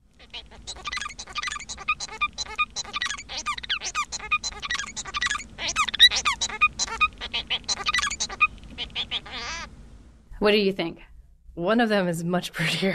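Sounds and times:
Bengalese finch song: 0:00.2 - 0:09.7
speech: 0:10.4 - 0:12.9.

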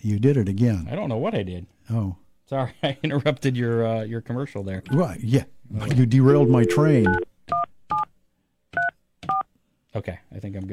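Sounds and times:
speech: 0:00.0 - 0:07.6, 0:10.0 - 0:10.7
telephone keypad dialing tones: 0:06.4 - 0:08.0.

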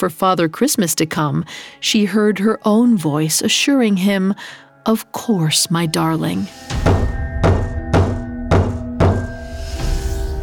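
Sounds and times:
speech: 0:00.0 - 0:07.0
slow heavy knocking on a front door: 0:06.8 - 0:09.4.

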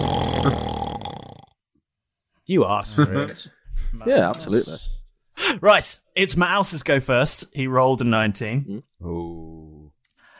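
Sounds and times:
voice imitating a monster's deafening roar: 0:00.0 - 0:01.5
speech: 0:02.5 - 0:09.6.

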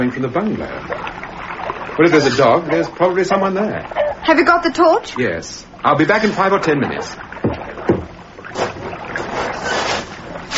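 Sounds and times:
speech: 0:00.0 - 0:01.1, 0:02.0 - 0:07.2
small boat moving on water, sloshing and splashing: 0:00.0 - 0:10.5.

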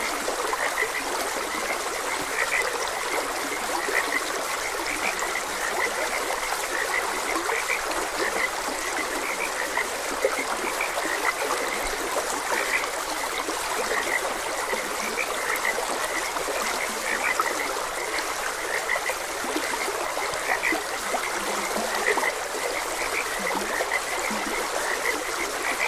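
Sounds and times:
frogs croaking: 0:00.0 - 0:25.8
stream water rushing: 0:00.0 - 0:25.8.

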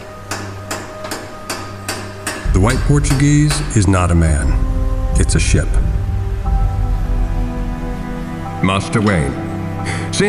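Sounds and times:
hammer blows on metal while repairing a car engine: 0:00.3 - 0:08.6
low steady hum: 0:02.4 - 0:10.1
speech: 0:02.6 - 0:05.8, 0:08.6 - 0:10.2.

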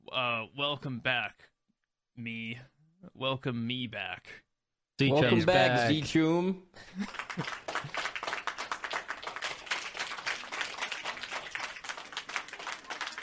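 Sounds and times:
speech: 0:00.1 - 0:01.5, 0:02.2 - 0:04.4, 0:05.0 - 0:08.0
clapping applause sound effect from soundboard: 0:07.0 - 0:13.2.

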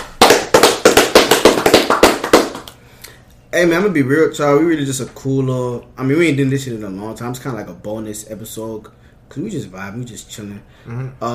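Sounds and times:
clapping: 0:00.0 - 0:02.8
speech: 0:03.6 - 0:11.3.

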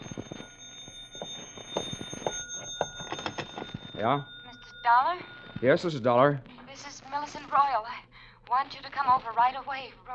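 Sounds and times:
telephone ringing: 0:00.0 - 0:07.8
speech: 0:04.0 - 0:10.1.

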